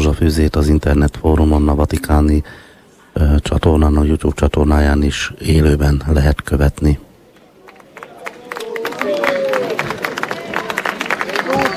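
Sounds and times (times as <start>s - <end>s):
speech: 0.2s - 7.0s
crowd applause: 7.6s - 11.7s.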